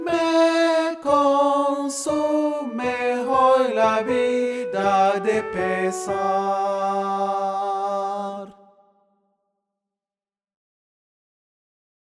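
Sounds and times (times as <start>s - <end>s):
soprano singing: 0.0s - 8.6s.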